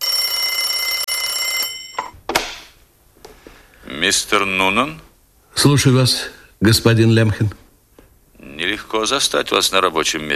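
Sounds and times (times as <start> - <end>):
telephone ringing: 0.0 - 2.2
speech: 4.0 - 7.6, 8.8 - 10.3.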